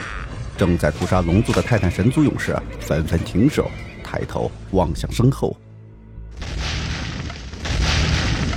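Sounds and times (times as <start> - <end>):
speech: 0.6 - 5.6
huge explosion: 6.4 - 8.5.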